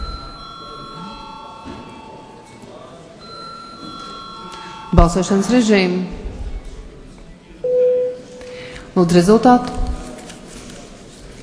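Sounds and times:
parliament voting bell ringing: 0.0s - 2.6s, 3.2s - 5.8s
low murmur: 0.0s - 11.4s
speech: 4.9s - 6.2s, 9.0s - 9.8s.

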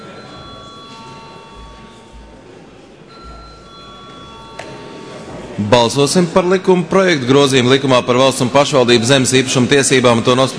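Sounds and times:
parliament chamber bell ringing before a vote: 0.0s - 6.5s
speech: 5.6s - 10.5s.

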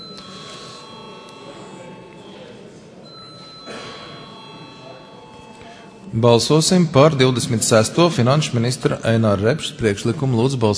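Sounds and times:
parliament chamber bell ringing before a vote: 0.0s - 7.5s
murmur of voices: 0.0s - 10.7s
speech: 6.1s - 10.7s.

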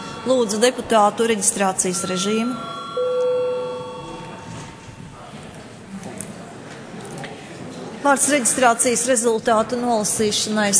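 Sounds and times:
parliament session bell ringing: 0.0s - 4.9s
low murmur of voices: 0.0s - 10.7s
speech: 0.2s - 2.8s, 8.1s - 10.7s.

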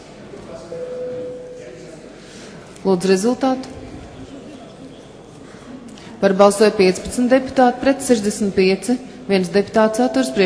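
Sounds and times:
murmuring speech-filled parliament chamber: 0.0s - 10.4s
voting bell in the Latvian parliament Saeima: 0.7s - 1.8s
speech: 2.8s - 3.8s, 6.2s - 10.4s.

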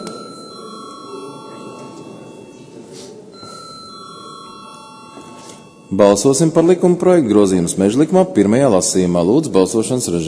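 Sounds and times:
electric bell ringing to call a vote: 0.0s - 6.8s
murmur of voices: 0.0s - 10.2s
speech: 5.9s - 10.2s.

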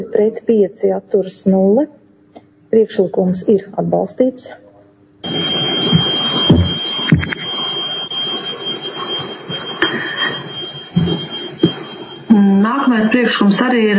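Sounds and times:
speech: 0.1s - 2.0s, 2.7s - 4.6s, 12.9s - 13.9s
parliament voting bell ringing: 5.2s - 13.4s.

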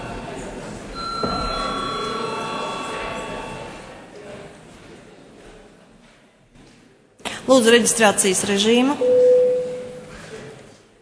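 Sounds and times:
parliament chamber bell calling deputies: 1.0s - 3.8s
speech: 7.5s - 9.3s.

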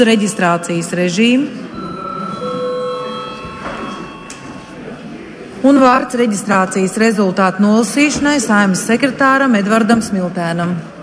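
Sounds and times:
speech: 0.0s - 1.7s, 5.6s - 10.9s
parliament chamber bell ringing: 1.7s - 5.1s.

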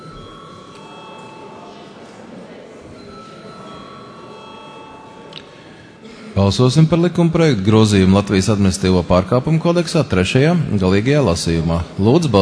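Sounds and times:
parliament chamber electric vote bell ringing: 0.0s - 2.0s, 3.0s - 5.7s
low murmur of voices: 0.0s - 12.3s
speech: 6.4s - 12.3s.

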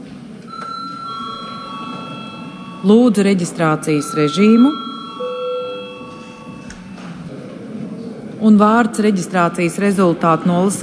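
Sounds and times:
low murmur of noise: 0.0s - 10.8s
parliament chamber bell ringing: 0.5s - 7.5s
speech: 2.8s - 4.8s, 8.4s - 10.8s.

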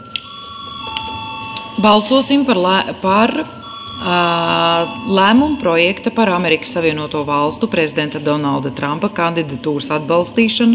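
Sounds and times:
parliament bell ringing before vote: 0.0s - 7.3s
speech: 1.8s - 10.7s.

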